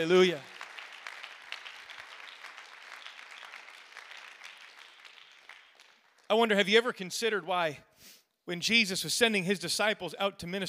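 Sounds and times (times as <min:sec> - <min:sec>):
speech: 0:00.0 - 0:00.5, 0:06.3 - 0:10.6
audience clapping hands: 0:00.0 - 0:07.0.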